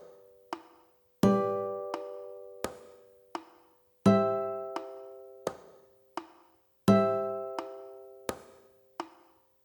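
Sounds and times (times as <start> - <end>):
guitar chord progression C F G C on high strings: 1.3 - 2.7, 4.1 - 5.4, 6.9 - 8.1.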